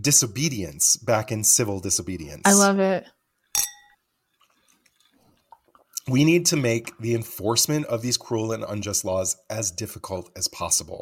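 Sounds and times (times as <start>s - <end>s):
speech: 0.0s - 3.7s, 6.1s - 11.0s
glasses clinking in a toast: 3.6s - 4.0s.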